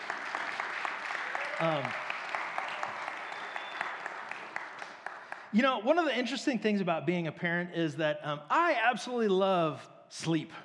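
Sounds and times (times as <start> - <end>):
audience applauding: 0.0 - 5.6
speech: 1.6 - 2.1, 5.5 - 10.6.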